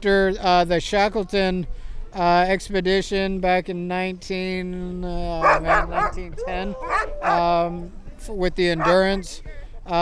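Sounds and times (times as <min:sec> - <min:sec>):
speech: 0:00.0 - 0:10.0
Iditarod sled dogs barking at the ceremonial start: 0:05.4 - 0:07.6, 0:08.7 - 0:09.3.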